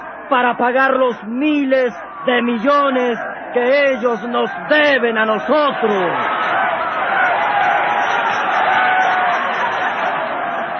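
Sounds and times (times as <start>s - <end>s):
speech: 0.3s - 6.4s
large crowd applauding after a speech: 2.1s - 10.7s.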